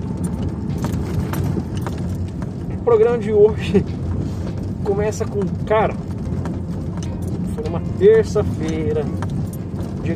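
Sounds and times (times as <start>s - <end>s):
car being driven: 0.0s - 10.1s
faint light clicks and rattles: 0.0s - 10.1s
speech: 2.9s - 4.0s, 4.9s - 6.0s, 7.8s - 9.2s.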